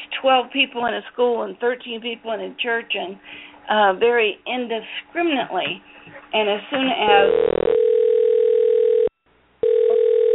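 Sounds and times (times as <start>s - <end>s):
speech: 0.2s - 7.7s
telephone ringing: 7.1s - 10.3s.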